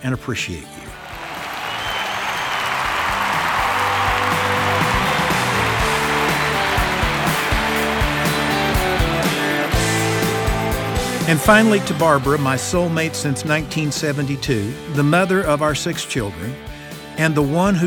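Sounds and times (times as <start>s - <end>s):
speech: 0.0s - 1.0s, 11.3s - 17.8s
applause: 1.0s - 10.9s.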